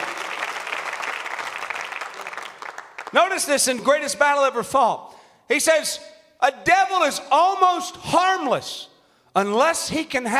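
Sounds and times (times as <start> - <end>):
audience clapping hands in praise: 0.0 - 3.8
speech: 3.1 - 10.3.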